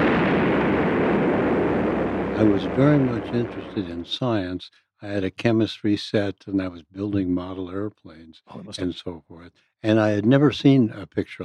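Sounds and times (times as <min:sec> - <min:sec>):
bombs exploding: 0:00.0 - 0:04.4
speech: 0:02.4 - 0:11.4.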